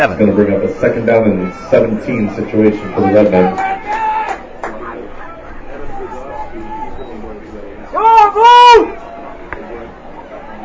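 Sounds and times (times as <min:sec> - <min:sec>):
speech: 0:00.0 - 0:04.0
crowd murmur: 0:00.0 - 0:10.6
person yelling right at the microphone: 0:08.0 - 0:08.9.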